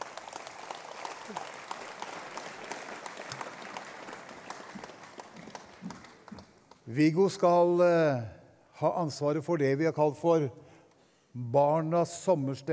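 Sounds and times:
audience applause: 0.0s - 6.8s
speech: 1.3s - 1.5s, 6.9s - 10.6s, 11.4s - 12.7s.

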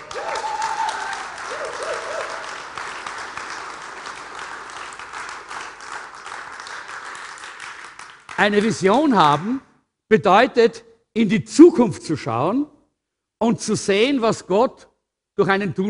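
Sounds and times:
cheers and whoops: 0.0s - 2.9s
crowd applauding: 0.0s - 9.6s
speech: 8.4s - 12.7s, 13.4s - 15.8s.

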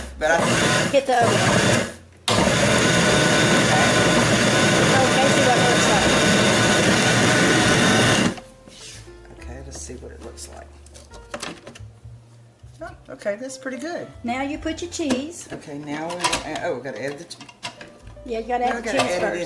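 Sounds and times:
speech: 0.2s - 1.9s, 12.8s - 17.6s, 18.2s - 19.4s
food processor pulsing sausage ball mixture: 0.3s - 8.4s.

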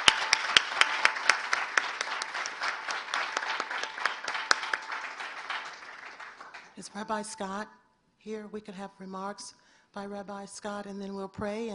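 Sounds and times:
round of applause: 0.0s - 6.8s
speech: 6.8s - 11.7s.

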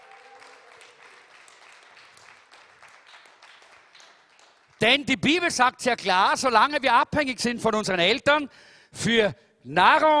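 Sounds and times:
audience applause: 0.0s - 4.8s
speech: 4.8s - 10.1s.

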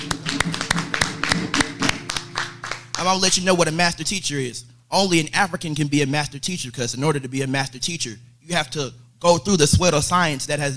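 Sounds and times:
audience hand clapping: 0.0s - 3.4s
speech: 3.0s - 10.7s.

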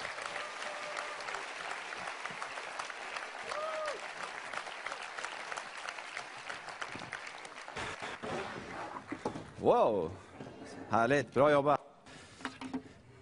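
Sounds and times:
whistles and cheers: 0.0s - 1.6s, 3.4s - 4.2s
audience applause welcoming speaker: 0.0s - 8.2s
speech: 9.6s - 10.3s, 10.9s - 11.8s.

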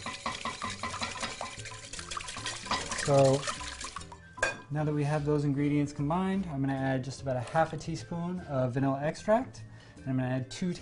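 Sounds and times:
whisking two eggs and heavy cream in a bowl for a royale: 0.0s - 4.1s
speech: 3.1s - 3.6s, 4.7s - 10.8s.

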